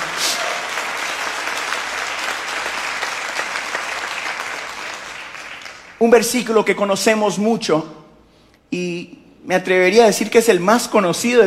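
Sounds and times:
audience applauding: 0:00.0 - 0:06.0
speech: 0:06.0 - 0:08.0, 0:08.7 - 0:11.4.

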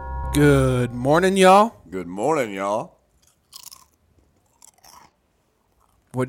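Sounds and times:
speech: 0:00.3 - 0:03.0
crunchy chewing of kettle-cooked barbecue potato chips: 0:03.1 - 0:06.1.

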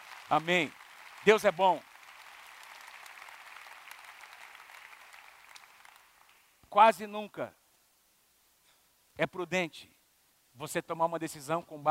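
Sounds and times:
audience applause: 0:00.0 - 0:06.6
speech: 0:00.3 - 0:01.9, 0:06.8 - 0:07.6, 0:09.2 - 0:10.0, 0:10.6 - 0:11.8.

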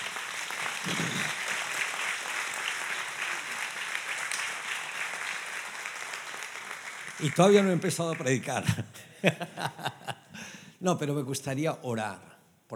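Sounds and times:
audience applause: 0:00.0 - 0:10.1
speech: 0:00.8 - 0:01.1, 0:07.2 - 0:12.7
laughter: 0:07.2 - 0:10.6.

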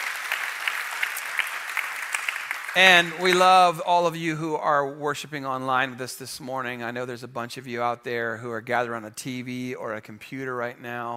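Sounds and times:
church congregation applauding its guests: 0:00.0 - 0:04.1
speech: 0:02.8 - 0:11.1.

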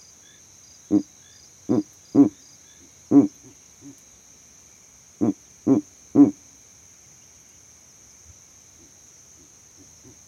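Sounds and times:
steady high insect hum: 0:00.0 - 0:10.2
Verreaux's eagle owl hooting: 0:01.7 - 0:02.4, 0:03.1 - 0:04.0, 0:05.2 - 0:06.4.

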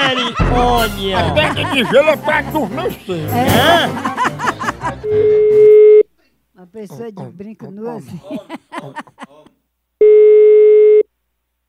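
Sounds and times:
laughter: 0:00.0 - 0:05.7, 0:06.8 - 0:09.6
speech: 0:00.4 - 0:04.1, 0:05.1 - 0:05.5, 0:06.6 - 0:09.3
telephone busy tone after dropped call: 0:05.2 - 0:06.0, 0:10.0 - 0:11.1.

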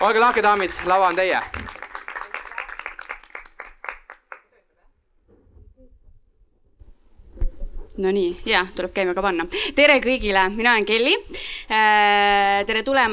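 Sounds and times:
speech: 0:00.0 - 0:01.6, 0:08.0 - 0:13.1
audience applause: 0:00.0 - 0:04.6.

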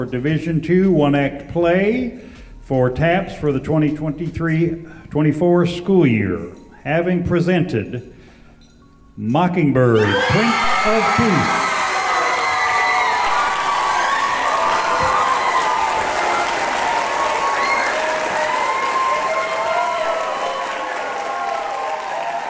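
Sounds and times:
speech: 0:00.0 - 0:08.1, 0:09.2 - 0:11.6
crowd applauding: 0:10.0 - 0:22.4.

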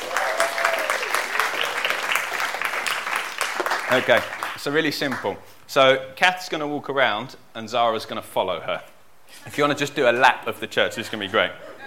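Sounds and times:
crowd applauding: 0:00.0 - 0:05.2
speech: 0:03.9 - 0:11.7.

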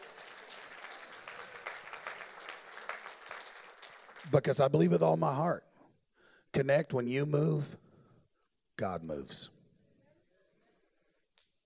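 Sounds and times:
few people clapping: 0:00.0 - 0:04.9
speech: 0:04.2 - 0:05.7, 0:06.6 - 0:07.8, 0:08.8 - 0:09.6.

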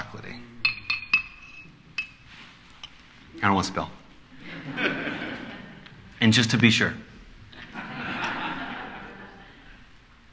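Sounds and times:
spoon clinking against a glass stirring a thick chocolate drink: 0:00.6 - 0:02.2
speech: 0:03.4 - 0:04.0, 0:06.2 - 0:07.1
laughter: 0:04.4 - 0:06.1, 0:07.5 - 0:09.9.

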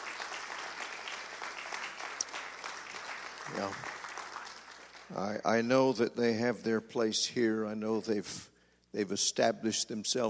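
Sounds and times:
audience clapping: 0:00.0 - 0:05.4
speech: 0:03.5 - 0:03.9, 0:05.1 - 0:10.2.

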